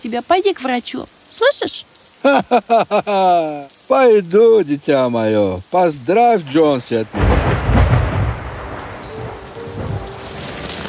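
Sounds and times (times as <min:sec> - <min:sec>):
speech: 0:00.0 - 0:07.4
hail falling in a town at night: 0:00.0 - 0:10.8
thunder: 0:07.1 - 0:10.8.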